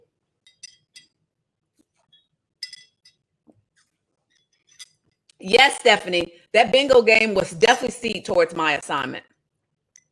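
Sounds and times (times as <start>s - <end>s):
glass clinking while taking a sip: 0.4s - 1.1s, 2.6s - 3.2s
speech: 5.4s - 9.3s.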